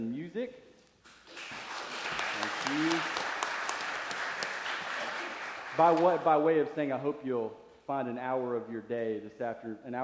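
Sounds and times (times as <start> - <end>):
crowd round of applause: 1.2 - 6.3
speech: 5.8 - 10.0.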